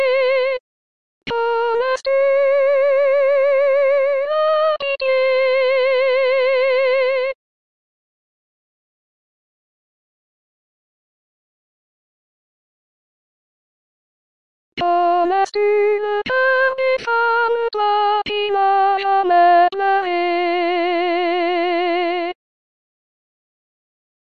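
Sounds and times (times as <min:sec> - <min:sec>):
soprano voice: 0:01.3 - 0:07.4, 0:14.8 - 0:22.4.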